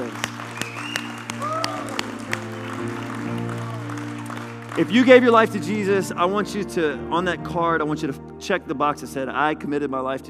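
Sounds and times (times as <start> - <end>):
audience hand clapping: 0.0 - 6.0
voices and whoops: 0.8 - 2.1
speech: 4.8 - 10.2.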